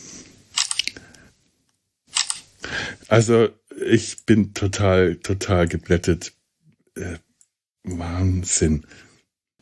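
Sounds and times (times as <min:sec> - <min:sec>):
photo being taken of a gift box: 0:00.6 - 0:00.9, 0:02.1 - 0:02.5
speech: 0:03.1 - 0:06.4, 0:07.0 - 0:07.2, 0:07.8 - 0:09.1.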